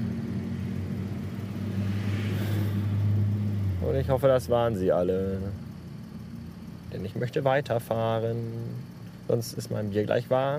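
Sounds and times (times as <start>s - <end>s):
large fire engines rumbling out of the fire station: 0.0s - 5.9s
speech: 3.9s - 5.7s, 6.9s - 10.5s.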